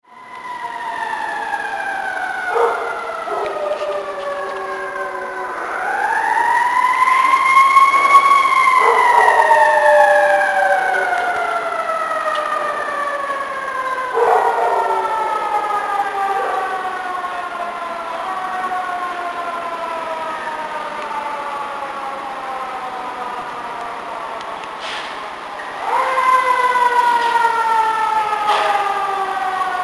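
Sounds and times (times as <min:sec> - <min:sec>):
howling: 0:00.6 - 0:24.8, 0:25.5 - 0:29.8.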